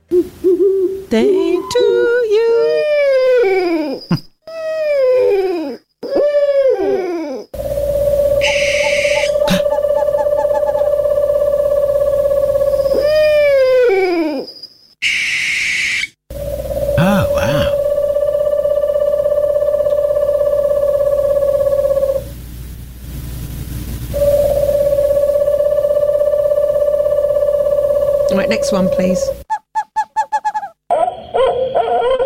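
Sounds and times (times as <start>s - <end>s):
owl hooting: 0.1s - 4.0s, 4.6s - 22.3s, 24.1s - 32.2s
speech: 1.1s - 2.1s.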